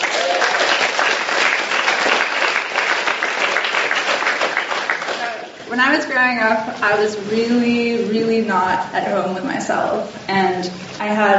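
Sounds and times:
audience applause: 0:00.0 - 0:05.7
speech: 0:05.8 - 0:11.3.

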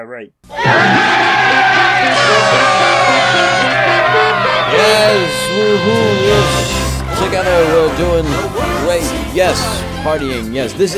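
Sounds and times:
speech: 0:00.0 - 0:01.0, 0:04.7 - 0:10.9
crowd cheering and celebratory whooping: 0:00.5 - 0:06.8.

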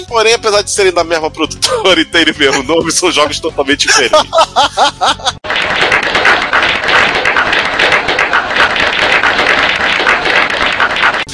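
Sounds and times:
speech: 0:00.0 - 0:05.4
laughter: 0:01.6 - 0:05.4
many hands clapping: 0:05.4 - 0:11.3.

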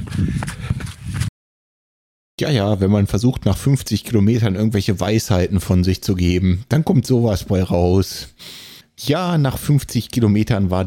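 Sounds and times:
running footsteps of a runner finishing a 50 km run: 0:00.0 - 0:01.3
speech: 0:00.2 - 0:00.7, 0:02.4 - 0:10.8.

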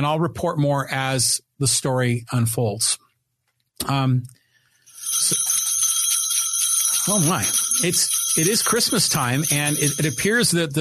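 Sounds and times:
speech: 0:00.0 - 0:03.0, 0:03.8 - 0:04.4, 0:05.1 - 0:05.5, 0:07.1 - 0:10.8
jingling bells: 0:04.9 - 0:10.8.

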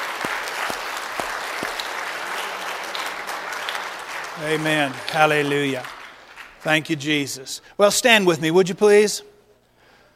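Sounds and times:
audience hand clapping: 0:00.0 - 0:07.4
speech: 0:04.4 - 0:06.0, 0:06.6 - 0:09.3.

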